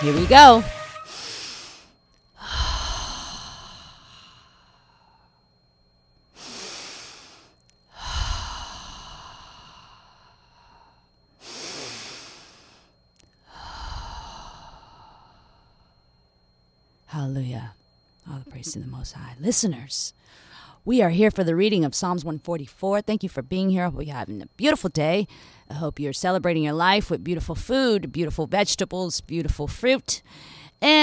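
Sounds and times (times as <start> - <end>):
speech: 0.0 - 0.8, 18.7 - 31.0
deep breaths in a guided breathing exercise: 1.1 - 5.6, 6.3 - 16.2, 20.2 - 20.8, 30.2 - 30.8.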